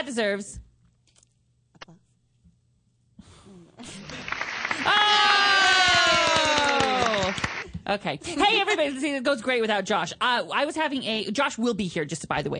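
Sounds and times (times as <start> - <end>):
speech: 0.1 - 0.7, 7.9 - 12.5
applause sound effect triggered by a button: 4.0 - 7.7.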